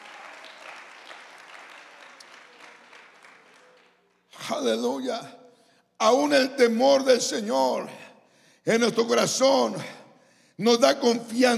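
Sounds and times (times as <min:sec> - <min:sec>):
audience applauding: 0:00.0 - 0:04.4
speech: 0:04.5 - 0:05.4, 0:06.0 - 0:08.0, 0:08.6 - 0:10.0, 0:10.6 - 0:11.5.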